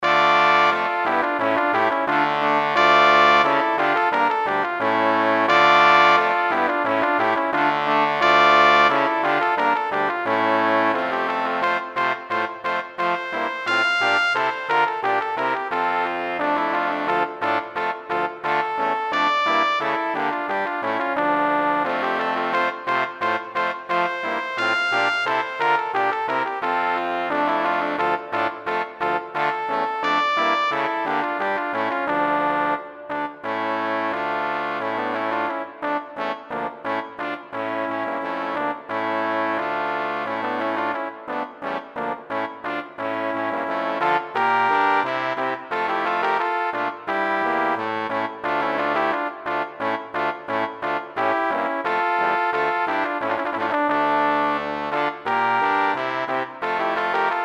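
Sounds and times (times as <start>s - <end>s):
brass instruments: 0.0s - 57.4s.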